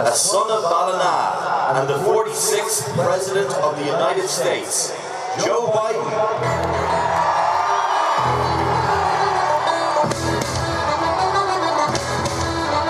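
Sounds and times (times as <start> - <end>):
speech: 0.1 - 7.6, 8.2 - 9.2
crowd cheering and roaring at event entrance: 4.4 - 12.8
people whooping and shouting: 6.4 - 11.2.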